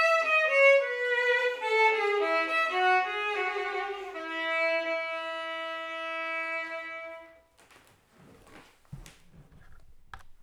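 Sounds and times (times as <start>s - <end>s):
solo violin piece in E major: 0.0s - 7.9s.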